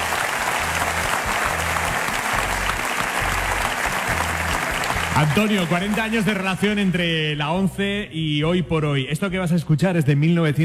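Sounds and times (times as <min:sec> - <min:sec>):
applause: 0:00.0 - 0:07.2
speech: 0:05.2 - 0:10.6.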